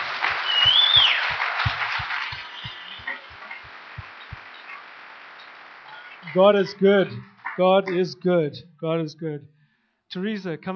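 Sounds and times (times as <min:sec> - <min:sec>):
audience applause: 0:00.0 - 0:08.0
whistle: 0:00.4 - 0:01.4, 0:02.3 - 0:03.3
speech: 0:06.3 - 0:10.7.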